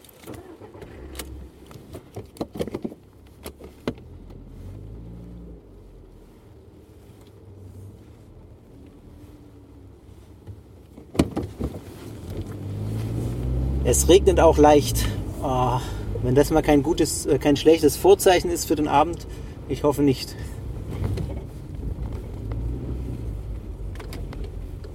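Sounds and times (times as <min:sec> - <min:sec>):
car driving off: 0:00.2 - 0:02.3, 0:03.2 - 0:10.3, 0:11.1 - 0:24.9
speech: 0:13.9 - 0:15.2, 0:15.8 - 0:20.5.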